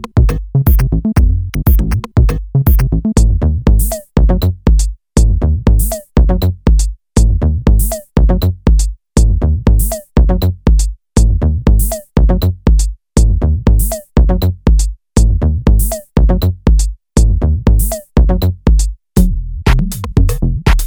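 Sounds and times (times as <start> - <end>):
techno bass loops: 0.0 - 20.8.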